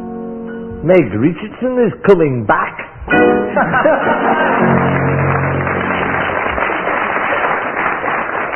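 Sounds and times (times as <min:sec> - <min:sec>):
speech: 0:00.9 - 0:04.8
laughter: 0:03.5 - 0:05.1
audience applause: 0:04.0 - 0:08.5.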